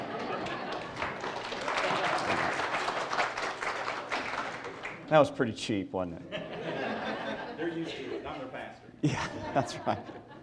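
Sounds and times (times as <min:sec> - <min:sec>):
laughter: 0:00.0 - 0:02.6, 0:06.2 - 0:10.4
audience applause: 0:00.0 - 0:05.0
speech: 0:05.1 - 0:06.4, 0:07.7 - 0:10.3.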